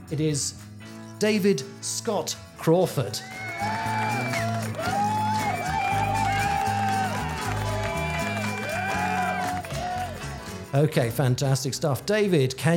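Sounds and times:
speech: 0:00.1 - 0:04.4, 0:10.7 - 0:12.7
audience applause: 0:03.2 - 0:10.7.

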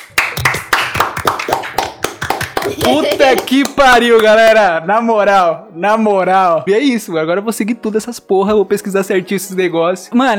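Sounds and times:
person clapping hands: 0:00.0 - 0:04.4
laughter: 0:02.5 - 0:03.7
speech: 0:02.7 - 0:10.3.

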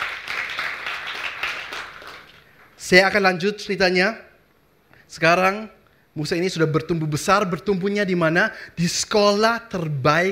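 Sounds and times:
audience applause: 0:00.0 - 0:02.5
speech: 0:02.9 - 0:04.3, 0:05.1 - 0:10.3.

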